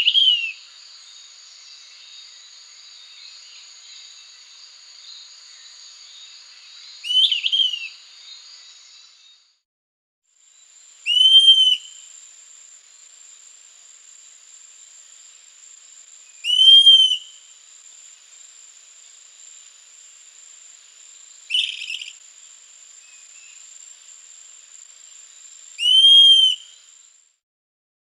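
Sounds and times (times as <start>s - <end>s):
Lesser Antillean Flycatcher calling in Guadeloupe: 0.0s - 0.7s, 7.0s - 8.0s, 11.0s - 12.1s, 16.3s - 17.5s, 21.4s - 22.2s, 25.8s - 27.0s.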